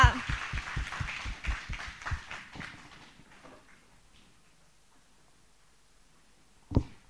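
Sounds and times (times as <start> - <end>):
audience applause: 0.0 - 3.8.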